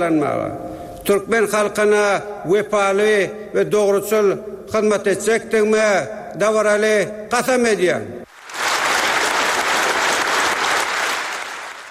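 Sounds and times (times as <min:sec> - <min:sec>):
speech: 0:00.0 - 0:08.2
government members and people's deputies applauding the new president at a Turkmenistan swearing-in: 0:08.3 - 0:11.9.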